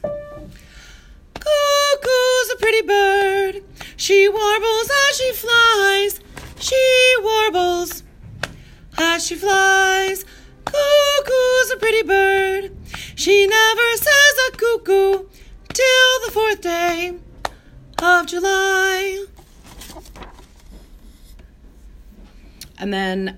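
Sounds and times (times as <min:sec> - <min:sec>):
soprano singing: 0:00.0 - 0:00.7, 0:01.4 - 0:08.1, 0:08.9 - 0:17.2, 0:17.9 - 0:19.4.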